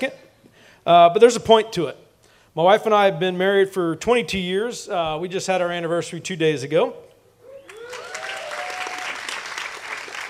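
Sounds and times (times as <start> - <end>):
speech: 0.0 - 0.2, 0.8 - 2.0, 2.6 - 7.1
whoops and cheers: 7.4 - 9.5
audience applause: 7.6 - 10.2.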